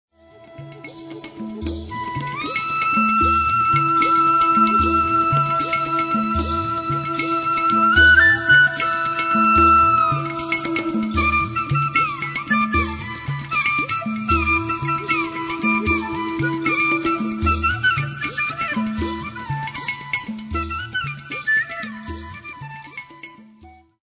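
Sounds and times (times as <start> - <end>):
raga music: 0.2 - 24.0.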